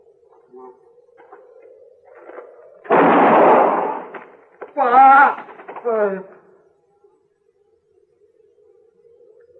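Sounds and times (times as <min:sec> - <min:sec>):
gunshot from a gun held by a woman: 0:02.9 - 0:04.3
speech: 0:04.8 - 0:06.4.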